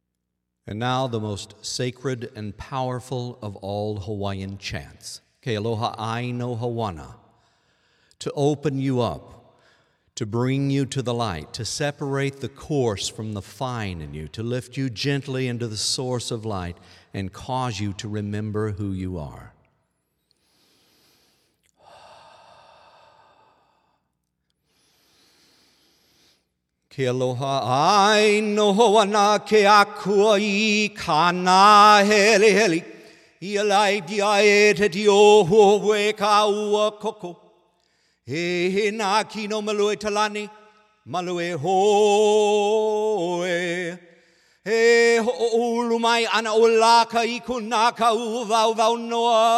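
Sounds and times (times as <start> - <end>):
person chanting a Hawaiian sacred chant: 0.7 - 7.3, 8.2 - 9.4, 10.1 - 19.6, 26.9 - 37.5, 38.3 - 44.1, 44.7 - 49.5.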